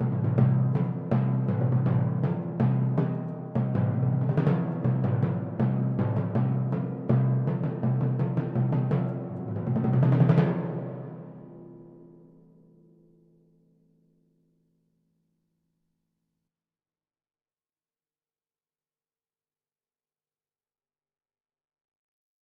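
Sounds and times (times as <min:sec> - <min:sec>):
timpani: 0:00.0 - 0:12.0.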